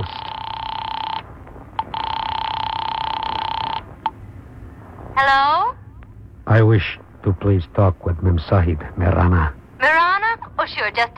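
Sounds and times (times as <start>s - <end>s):
telephone ringing: 0.0s - 4.2s
speech: 5.2s - 5.5s, 6.6s - 9.9s, 10.7s - 11.1s.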